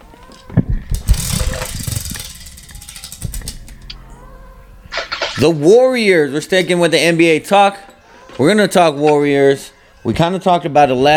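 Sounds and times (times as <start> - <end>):
prize wheel spinning and clicking: 1.0 - 4.0
speech: 5.4 - 11.1.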